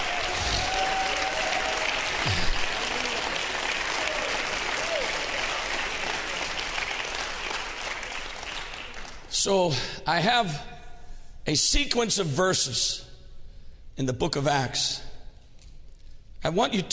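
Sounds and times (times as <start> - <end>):
audience applauding: 0.0 - 9.3
speech: 9.4 - 10.7, 11.4 - 13.0, 14.0 - 15.0, 16.4 - 16.9.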